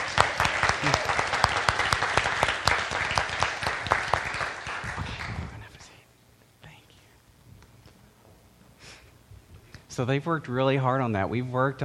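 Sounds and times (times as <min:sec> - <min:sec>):
audience applause: 0:00.0 - 0:05.6
speech: 0:10.0 - 0:11.8.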